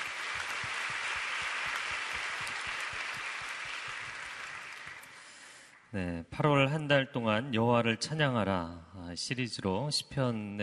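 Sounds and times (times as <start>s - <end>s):
audience applause: 0.0s - 5.6s
speech: 5.9s - 10.6s.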